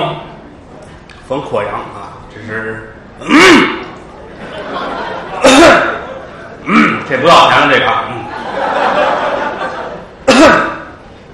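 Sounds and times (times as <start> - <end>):
speech: 1.3 - 3.8, 7.1 - 8.1
man coughing: 3.2 - 4.0, 5.3 - 7.1, 10.2 - 11.0
laughter: 4.0 - 6.7, 8.0 - 10.7.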